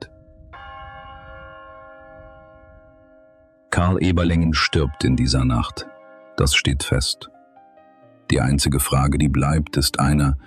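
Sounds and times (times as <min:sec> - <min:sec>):
church bell striking midnight: 0:00.0 - 0:07.4
speech: 0:03.8 - 0:07.3, 0:08.3 - 0:10.4.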